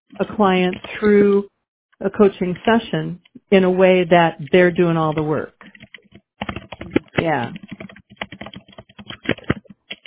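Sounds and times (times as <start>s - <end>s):
speech: 0.1s - 5.8s, 7.2s - 7.6s
rapid typing on a computer keyboard during an online coaching call: 4.8s - 10.0s.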